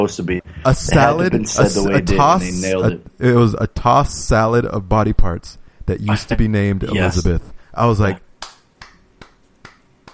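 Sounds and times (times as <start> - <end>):
speech: 0.0 - 8.2
hand claps: 8.4 - 10.1.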